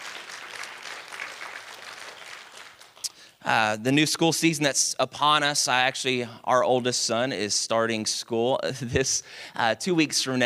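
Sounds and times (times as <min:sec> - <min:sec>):
audience clapping: 0:00.0 - 0:03.2
speech: 0:03.4 - 0:10.4.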